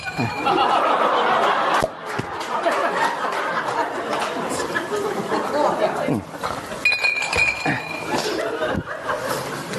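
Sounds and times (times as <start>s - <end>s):
people chuckling softly: 0.0s - 6.8s, 7.6s - 9.7s
lively overlapping chatter: 0.0s - 9.7s
wine cups clinking together in a toast: 6.8s - 8.2s.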